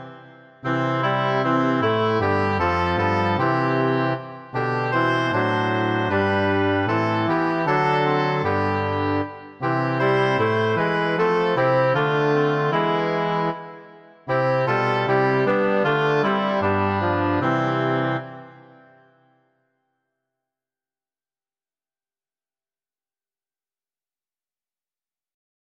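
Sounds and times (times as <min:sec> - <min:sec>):
oboe: 0:00.0 - 0:18.6
tuba: 0:00.0 - 0:18.9
bassoon: 0:00.0 - 0:19.0.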